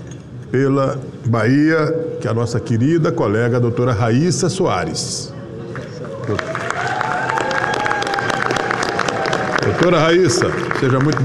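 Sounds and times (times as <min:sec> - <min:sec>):
speech: 0:00.5 - 0:05.4, 0:06.3 - 0:06.5, 0:09.8 - 0:11.2
audience applause: 0:05.7 - 0:11.2.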